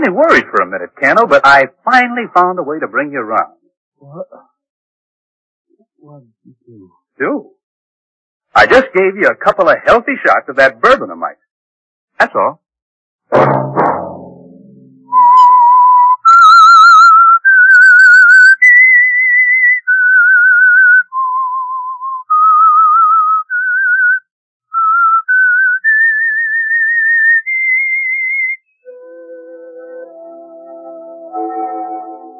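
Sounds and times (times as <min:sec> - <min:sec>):
speech: 0:00.0 - 0:04.5, 0:06.0 - 0:07.6, 0:08.5 - 0:11.4, 0:12.2 - 0:12.6, 0:13.3 - 0:14.0
whistled theme tune for a radio program: 0:15.1 - 0:32.3.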